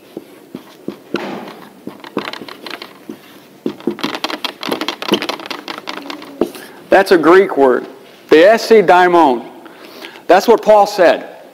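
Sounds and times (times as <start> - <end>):
Greek letters being written by hand: 0.0 - 6.8
speech: 6.9 - 9.5, 10.3 - 11.3.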